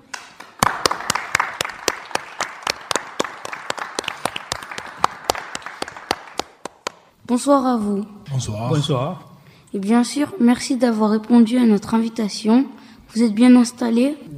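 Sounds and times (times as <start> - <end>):
audience applause: 0.1 - 7.1
speech: 7.3 - 14.3.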